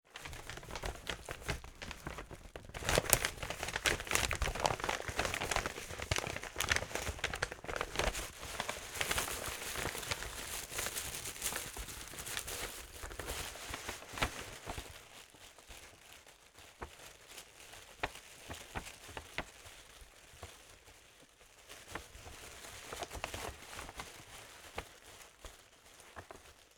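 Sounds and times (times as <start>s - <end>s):
paper crumpling: 0.1s - 20.9s, 21.7s - 26.7s.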